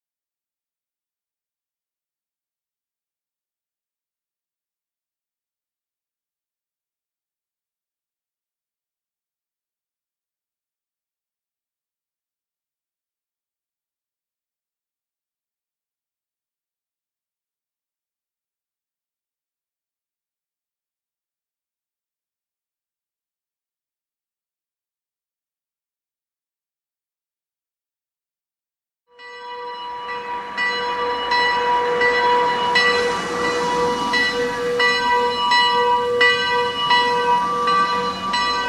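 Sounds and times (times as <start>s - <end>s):
town hall bell ringing: 29.2s - 38.6s.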